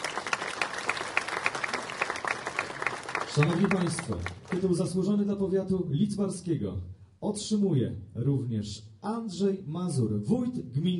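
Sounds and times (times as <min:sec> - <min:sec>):
audience applause at an award ceremony: 0:00.0 - 0:04.8
speech: 0:03.4 - 0:10.9.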